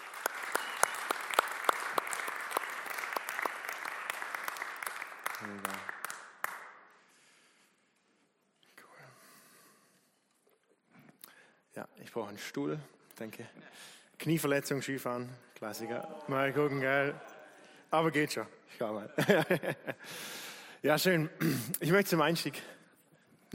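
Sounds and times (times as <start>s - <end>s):
audience applauding the worship team: 0.0s - 7.0s
speech: 5.4s - 6.0s, 12.1s - 17.3s, 17.9s - 22.8s
laughter: 18.9s - 20.1s.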